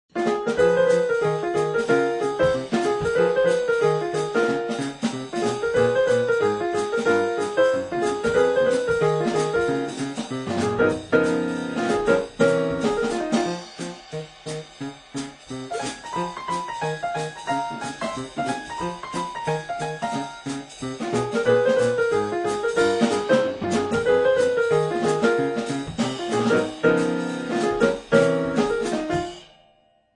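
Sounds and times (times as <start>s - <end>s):
piano: 0.0s - 30.1s
drums: 0.1s - 29.6s.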